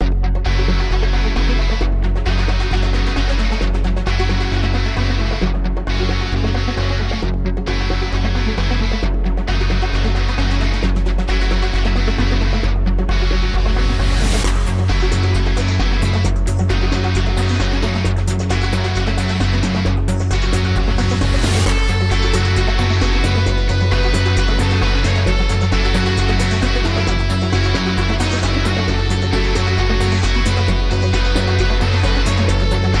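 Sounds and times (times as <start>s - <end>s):
battle music: 0.0s - 32.9s.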